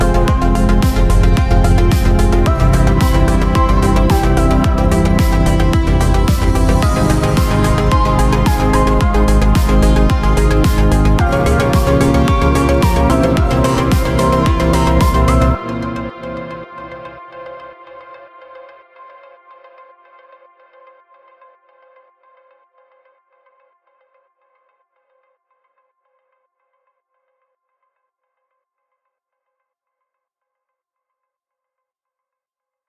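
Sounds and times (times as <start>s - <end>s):
emotional electronic music: 0.0s - 21.4s.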